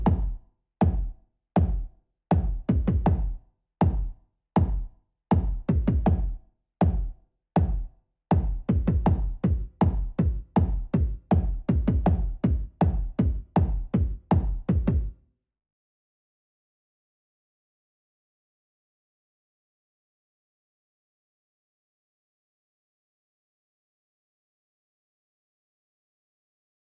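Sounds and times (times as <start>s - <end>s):
drums: 0.0s - 15.2s.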